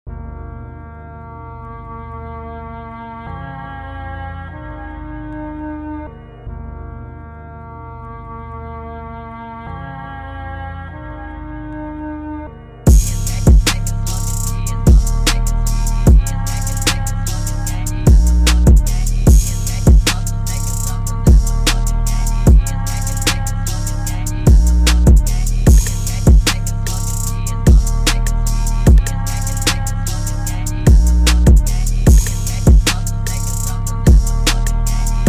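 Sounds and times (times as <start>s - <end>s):
phonk type beat: 12.9s - 35.2s.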